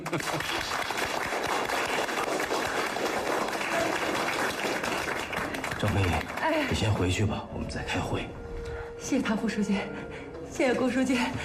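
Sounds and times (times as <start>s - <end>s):
group applause: 0.0s - 7.4s
speech: 0.1s - 0.8s, 5.8s - 8.4s, 9.0s - 11.4s.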